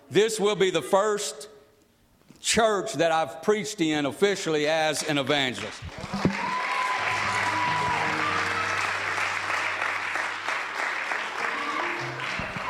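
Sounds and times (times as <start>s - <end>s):
speech: 0.1s - 1.6s, 2.4s - 6.3s
audience clapping: 5.5s - 12.6s.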